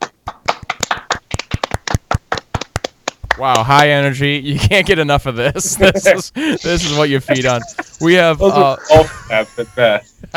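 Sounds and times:
hands clapping: 0.0 - 3.8
speech: 3.4 - 10.3
laughter: 5.3 - 10.3.

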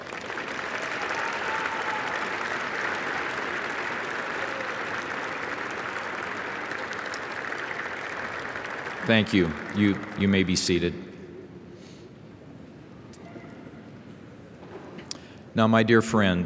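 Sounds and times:
graduates' round of applause: 0.0 - 10.9
speech: 9.1 - 11.0, 15.6 - 16.4.

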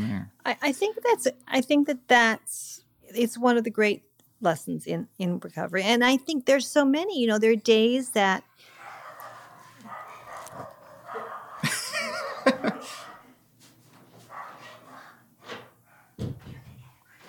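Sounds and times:
speech: 0.5 - 8.7
dogs barking: 8.6 - 13.4, 14.2 - 16.2
laughter: 11.6 - 13.0.

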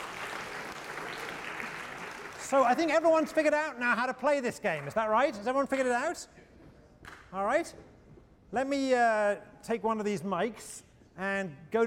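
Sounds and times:
crowd applauding: 0.0 - 3.8
speech: 2.5 - 6.4, 7.3 - 7.9, 8.5 - 11.8.

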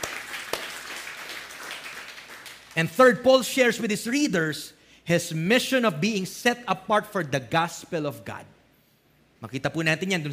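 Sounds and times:
church congregation applauding: 0.0 - 3.0
speech: 2.8 - 8.6, 9.4 - 10.3.

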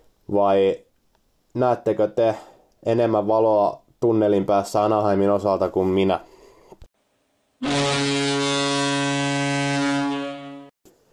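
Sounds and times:
speech: 0.3 - 0.9, 1.5 - 6.4
buzzer marking the end of a period: 7.6 - 10.7.

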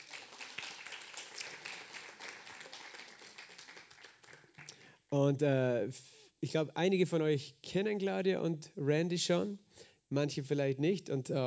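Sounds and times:
audience applause: 0.0 - 4.7
speech: 5.1 - 11.4.

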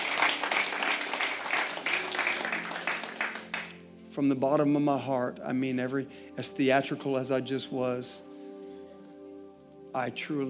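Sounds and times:
audience clapping hands in sustained applause: 0.0 - 3.9
speech: 4.2 - 8.3, 10.0 - 10.4.

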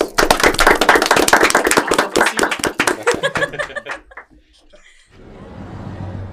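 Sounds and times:
applause: 0.0 - 4.3
laughter: 2.8 - 5.1.

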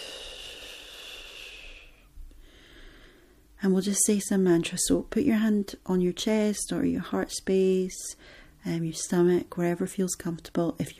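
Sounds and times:
deep cleansing breath in through nose, out through mouth: 0.0 - 3.5, 8.2 - 8.6
speech: 3.6 - 10.9.

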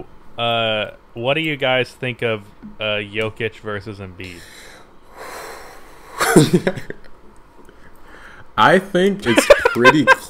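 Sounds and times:
speech: 0.4 - 4.7, 6.4 - 7.0, 8.6 - 10.2
person taking a deep breath: 4.4 - 5.9, 7.7 - 8.5
laughter: 6.2 - 7.0, 9.2 - 10.2.

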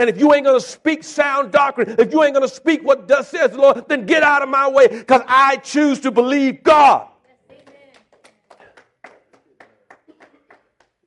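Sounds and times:
speech: 0.0 - 7.1
audience claps: 7.3 - 11.0.

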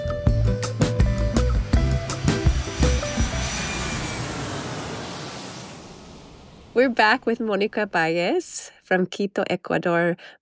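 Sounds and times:
jet airplane roaring during takeoff: 0.4 - 7.9
speech: 6.8 - 10.4.

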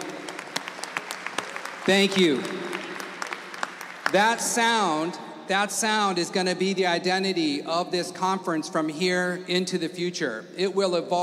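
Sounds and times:
audience clapping: 0.0 - 5.1
speech: 1.8 - 2.6, 4.1 - 11.2.

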